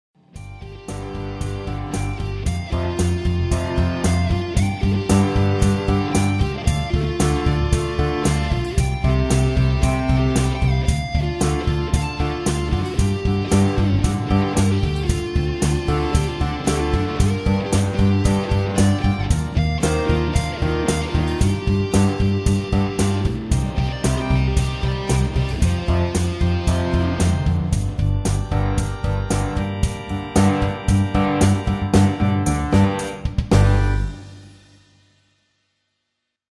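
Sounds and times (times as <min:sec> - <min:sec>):
guitar solo: 0:00.4 - 0:34.2.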